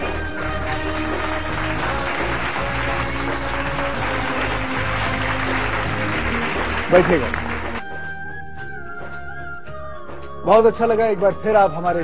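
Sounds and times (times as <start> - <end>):
audience applause: 0.0 - 7.8
speech: 6.9 - 7.4, 10.5 - 12.0.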